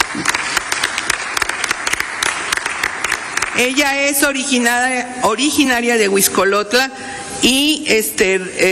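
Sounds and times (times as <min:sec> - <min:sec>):
audience applause: 0:00.0 - 0:03.7
speech: 0:03.6 - 0:08.7.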